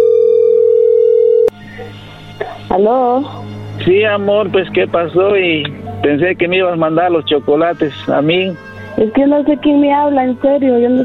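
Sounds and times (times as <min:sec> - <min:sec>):
telephone call connecting tone: 0:00.0 - 0:01.6
speech: 0:02.7 - 0:11.0.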